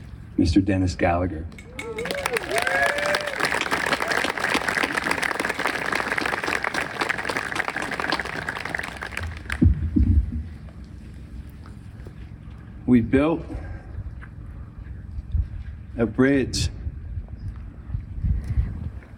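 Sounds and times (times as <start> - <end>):
speech: 0.4 - 1.9, 12.9 - 13.7, 16.0 - 16.8
whoops from crowd: 1.6 - 4.4
audience applause: 1.8 - 9.6
low rumble: 9.2 - 19.1.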